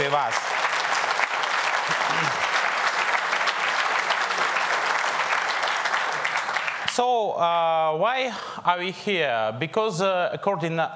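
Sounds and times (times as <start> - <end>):
audience applause: 0.0 - 7.0
speech: 0.1 - 0.6, 7.0 - 10.9.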